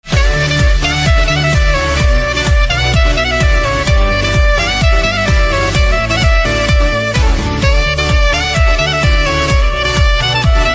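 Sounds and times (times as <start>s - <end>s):
saxophone instrumental ringtone: 0.0s - 10.7s.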